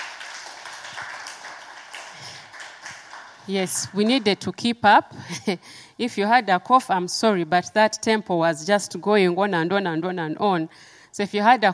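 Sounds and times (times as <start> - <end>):
audience clapping hands: 0.0 - 4.4
speech: 3.5 - 11.7.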